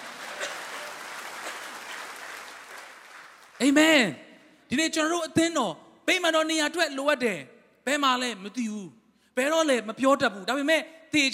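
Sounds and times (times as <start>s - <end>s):
congregation clapping hands in praise during a church sermon: 0.0s - 4.1s
speech: 3.6s - 11.3s.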